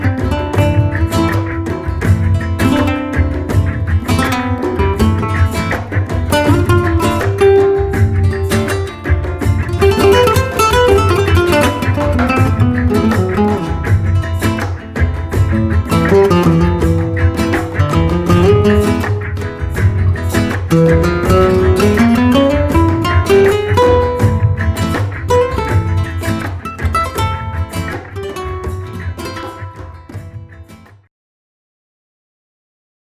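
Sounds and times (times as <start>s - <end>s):
flamenco guitar playing rumba: 0.0s - 31.0s.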